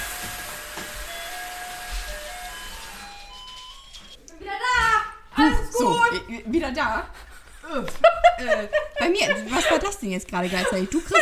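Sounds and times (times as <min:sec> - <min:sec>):
doorbell ringing: 0:00.8 - 0:04.2
speech: 0:05.8 - 0:11.1
laughter: 0:07.1 - 0:11.1.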